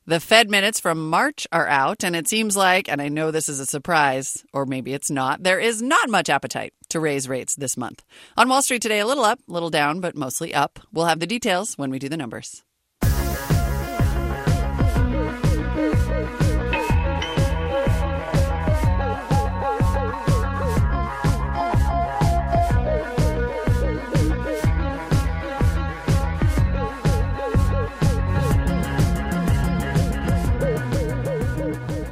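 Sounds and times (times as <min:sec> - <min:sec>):
speech: 0:00.1 - 0:12.7
TV theme music with synth and orchestral parts: 0:13.0 - 0:32.1.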